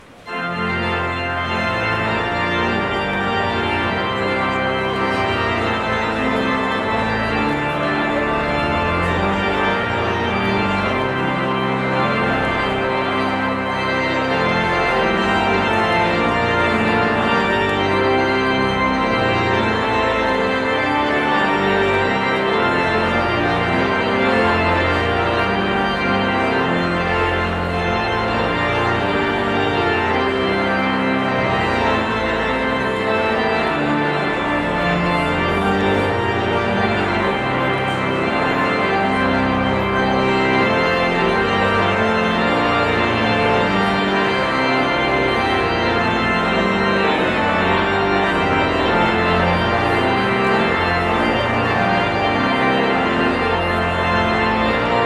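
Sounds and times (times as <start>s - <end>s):
postlude: 0.0s - 55.0s.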